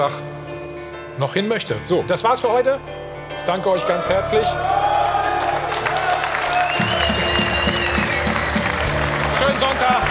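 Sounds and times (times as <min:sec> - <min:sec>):
speech: 0:00.0 - 0:00.4, 0:01.2 - 0:05.0
audience applause: 0:04.3 - 0:10.1.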